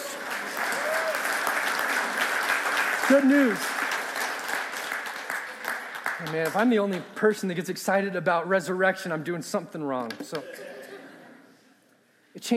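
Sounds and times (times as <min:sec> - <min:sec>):
audience applause: 0:00.0 - 0:07.2
speech: 0:03.1 - 0:03.8, 0:06.2 - 0:10.7, 0:12.4 - 0:12.5
laughter: 0:10.3 - 0:11.8.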